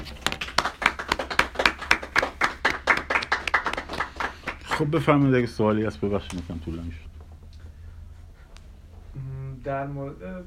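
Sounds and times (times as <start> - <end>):
audience applause: 0.0 - 5.1
speech: 4.8 - 7.1, 9.7 - 10.4.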